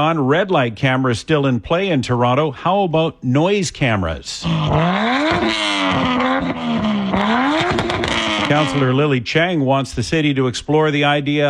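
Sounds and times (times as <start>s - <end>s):
speech: 0.0s - 7.8s, 8.5s - 11.4s
car engine revving with noisy modified exhaust: 4.3s - 9.0s
exhaust crackles and pops: 4.4s - 9.1s.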